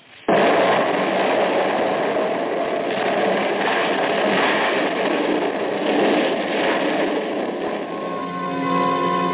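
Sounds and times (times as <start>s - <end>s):
dynamite explosion: 0.0s - 9.3s.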